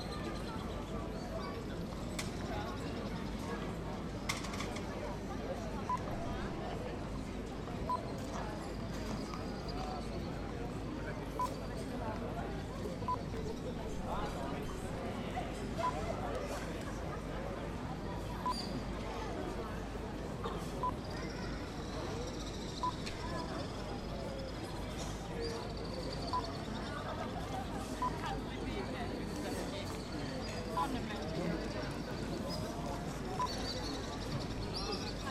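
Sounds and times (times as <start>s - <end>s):
street ambience in Dubrovnik: 0.0s - 35.2s.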